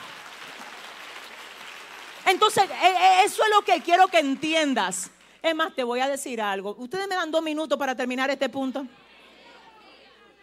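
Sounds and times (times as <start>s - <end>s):
audience applause: 0.0s - 4.7s
speech: 2.3s - 9.0s.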